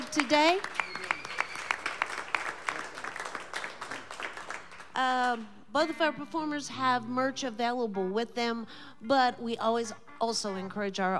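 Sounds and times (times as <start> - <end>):
audience applause: 0.0 - 5.0
speech: 0.2 - 0.8, 5.0 - 11.1.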